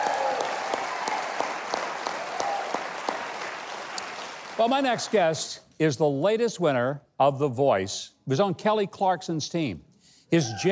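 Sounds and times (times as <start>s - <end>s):
audience applause: 0.0s - 5.2s
speech: 4.6s - 10.6s.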